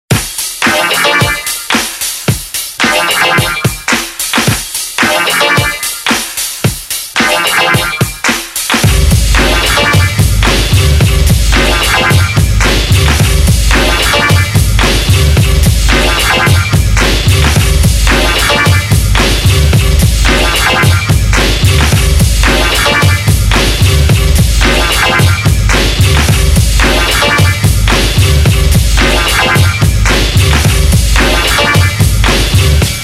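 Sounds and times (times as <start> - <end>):
funky music: 0.1 - 33.0.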